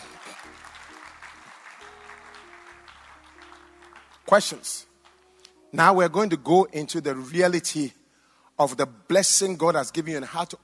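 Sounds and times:
audience clapping: 0:00.0 - 0:05.5
speech: 0:04.3 - 0:04.9, 0:05.7 - 0:08.0, 0:08.6 - 0:10.6.

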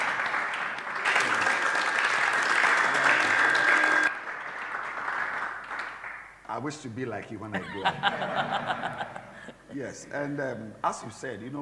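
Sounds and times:
audience clapping hands: 0:00.0 - 0:06.5
laughter: 0:02.6 - 0:03.5, 0:07.5 - 0:10.3
speech: 0:06.6 - 0:09.2, 0:09.8 - 0:11.6.

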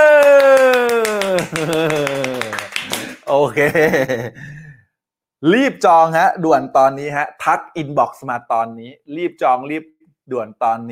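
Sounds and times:
audience clapping: 0:00.0 - 0:03.5
laughter: 0:00.8 - 0:04.5
speech: 0:01.5 - 0:02.1, 0:03.3 - 0:04.6, 0:05.4 - 0:10.9.

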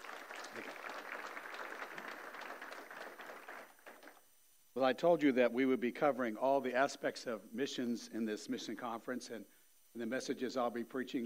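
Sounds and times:
church congregation applauding at an evening mission conference: 0:00.0 - 0:04.2
speech: 0:04.8 - 0:11.2.

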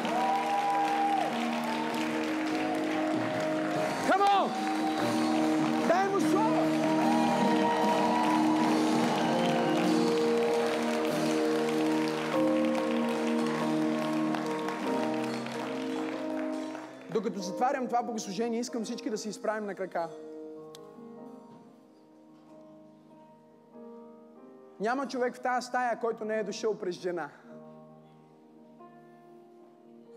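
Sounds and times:
audience applause: 0:00.0 - 0:17.2
speech: 0:17.2 - 0:20.3, 0:24.8 - 0:27.5.

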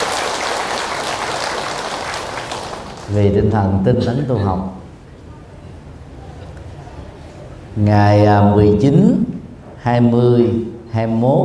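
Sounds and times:
crowd applauding: 0:00.0 - 0:03.2
speech: 0:03.1 - 0:04.8, 0:07.8 - 0:11.4.

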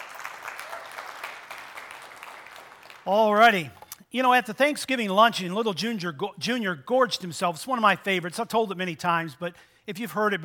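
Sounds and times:
audience applause: 0:00.0 - 0:03.1
speech: 0:03.0 - 0:10.4.

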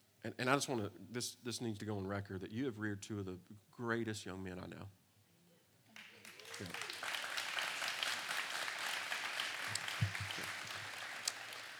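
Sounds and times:
speech: 0:00.2 - 0:05.0, 0:06.6 - 0:06.9
light applause: 0:05.9 - 0:11.7.

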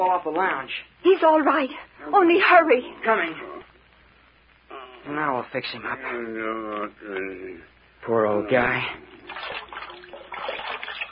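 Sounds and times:
speech: 0:00.0 - 0:03.5, 0:05.0 - 0:09.2
cold water splashing and trickling on an old man's head: 0:09.2 - 0:11.1.

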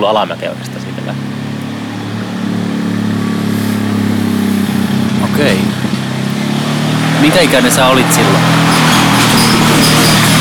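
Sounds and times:
speech: 0:00.0 - 0:01.2, 0:07.2 - 0:08.6
ATV pulling a trailer: 0:00.0 - 0:10.4
rattling trailer: 0:03.2 - 0:10.4.

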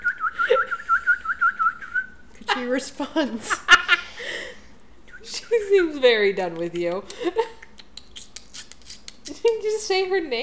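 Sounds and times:
person whistling bird noises: 0:00.0 - 0:02.2
speech: 0:02.6 - 0:03.7, 0:05.4 - 0:07.4, 0:09.4 - 0:10.4.

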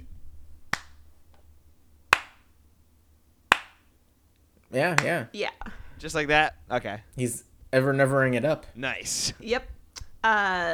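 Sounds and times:
clapping: 0:02.1 - 0:02.4, 0:03.5 - 0:03.8, 0:04.9 - 0:05.2
speech: 0:04.7 - 0:10.7.

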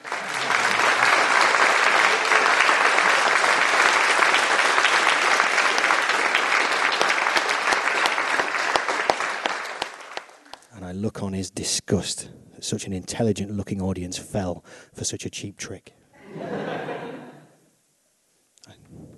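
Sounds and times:
large audience applause: 0:00.0 - 0:10.6
laughter: 0:00.1 - 0:01.4, 0:16.2 - 0:17.5
speech: 0:11.6 - 0:16.0.

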